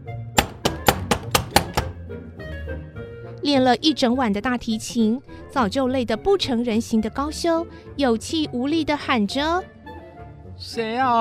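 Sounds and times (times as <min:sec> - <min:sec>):
knocking on a door: 0:00.4 - 0:02.0
speech: 0:03.4 - 0:09.7, 0:10.6 - 0:11.1.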